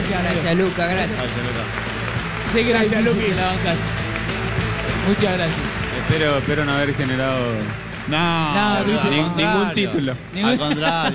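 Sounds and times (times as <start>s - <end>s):
laughter: 0.0s - 4.0s, 5.0s - 11.1s
applause: 0.0s - 11.1s
speech: 0.1s - 1.9s, 2.5s - 4.0s, 5.0s - 11.1s.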